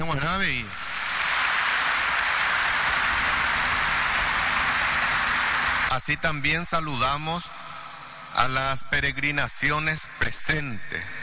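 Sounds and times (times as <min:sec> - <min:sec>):
speech: 0:00.1 - 0:00.9, 0:05.9 - 0:07.6, 0:08.4 - 0:11.2
strong applause at a Holy Mass: 0:00.6 - 0:06.1.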